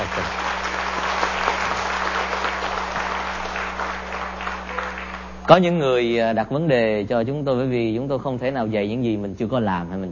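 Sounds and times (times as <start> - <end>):
applause: 0.0 - 5.7
speech: 5.5 - 10.1.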